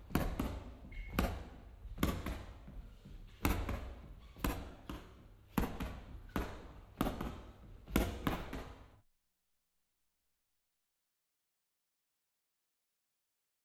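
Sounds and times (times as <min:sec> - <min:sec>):
boxing training punches on a punching bag: 0:00.1 - 0:02.6, 0:03.4 - 0:08.8.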